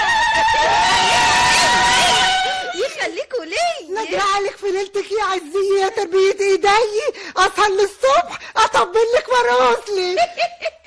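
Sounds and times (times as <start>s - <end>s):
women ululating at a henna night celebration: 0.0s - 2.9s
speech: 4.4s - 10.7s.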